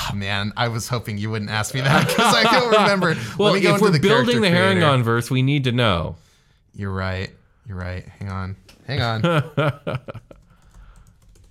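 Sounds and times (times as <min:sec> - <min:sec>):
speech: 0:00.1 - 0:06.2, 0:06.8 - 0:10.4
laughter: 0:01.7 - 0:04.9, 0:09.0 - 0:10.4
typing on a computer keyboard: 0:10.2 - 0:11.4.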